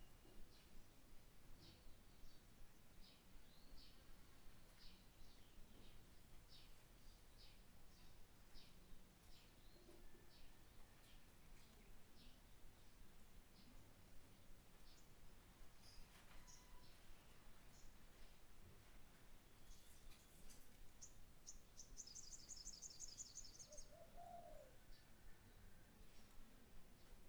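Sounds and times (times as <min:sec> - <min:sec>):
Nyepi morning garden ambience: 0:00.0 - 0:27.2.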